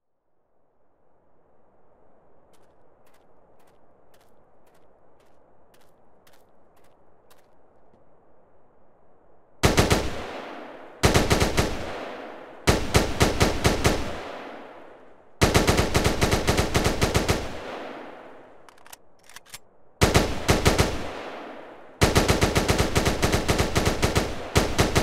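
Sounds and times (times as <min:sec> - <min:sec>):
AK47 and M4 rifle gunfire: 0:09.6 - 0:14.6, 0:15.4 - 0:18.2, 0:20.0 - 0:25.0.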